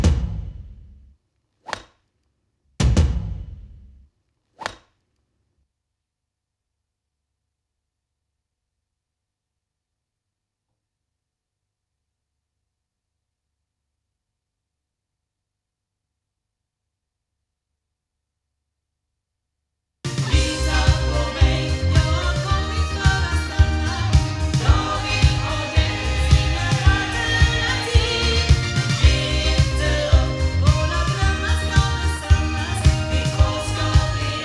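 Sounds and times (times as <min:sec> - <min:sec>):
loudspeakers: 0:20.2 - 0:34.4.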